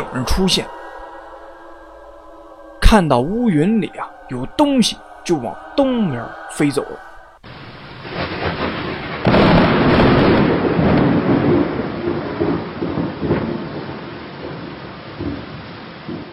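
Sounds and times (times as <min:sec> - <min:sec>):
speech: 0:00.2 - 0:00.8, 0:02.9 - 0:07.1
thunderclap: 0:08.0 - 0:14.6.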